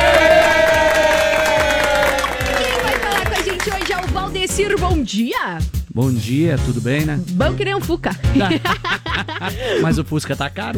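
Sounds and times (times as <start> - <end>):
crowd at the Farroupilha encampment cheering and clapping: 0.0 - 4.6
speech: 5.0 - 10.7
laughter: 8.3 - 10.5.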